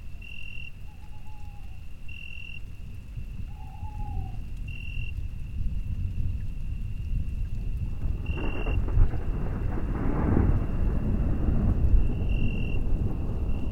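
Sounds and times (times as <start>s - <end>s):
rain hiss in Beaujolais: 0.0s - 13.7s
low rolling summer night thunder in Beaujolais: 5.5s - 13.7s.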